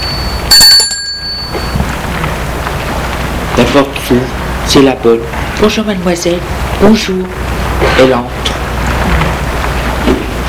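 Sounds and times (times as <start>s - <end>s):
doorbell ringing with a bright metallic tone: 0.0s - 1.8s
steady hiss of outdoor noise: 0.0s - 10.4s
speech: 3.7s - 8.6s.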